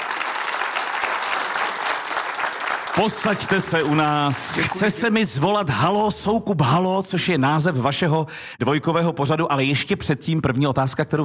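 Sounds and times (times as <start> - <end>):
live audience applauding a guest in Kaplice: 0.0 - 5.0
speech: 3.0 - 11.2.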